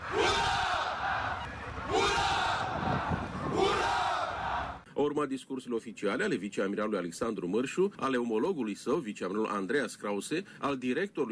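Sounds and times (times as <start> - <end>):
ship crew shouting hurrahs: 0.0 - 4.8
speech: 5.0 - 11.2.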